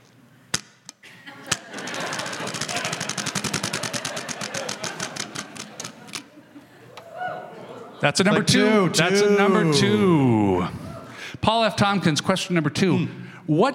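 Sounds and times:
laughter: 1.0 - 11.2
spinning question wheel with numbered spokes clicking: 1.8 - 6.2
speech: 8.0 - 10.8, 11.4 - 13.7.

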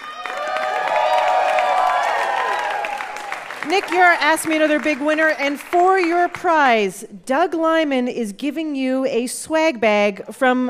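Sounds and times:
audience cheering and applauding: 0.0 - 6.5
speech: 3.7 - 10.6.

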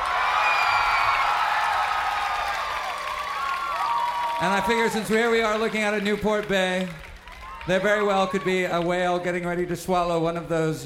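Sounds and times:
crowd of people screaming: 0.0 - 6.2, 7.2 - 8.9
speech: 4.4 - 7.0, 7.6 - 10.8.

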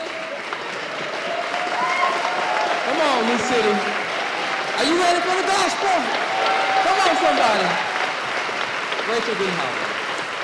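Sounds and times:
church audience clapping: 0.0 - 10.4
church audience whoops and shouts: 1.1 - 3.2, 4.2 - 8.1
speech: 3.2 - 4.0, 4.8 - 7.9, 9.1 - 9.8.

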